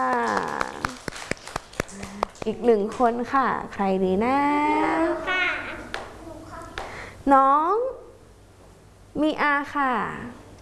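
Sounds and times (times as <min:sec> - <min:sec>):
children clapping hands: 0:00.0 - 0:02.6, 0:05.9 - 0:07.0
speech: 0:02.4 - 0:05.3, 0:07.3 - 0:07.9, 0:09.2 - 0:10.4.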